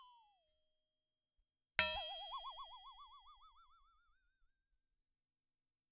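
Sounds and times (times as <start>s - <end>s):
flexatone: 1.8s - 4.1s.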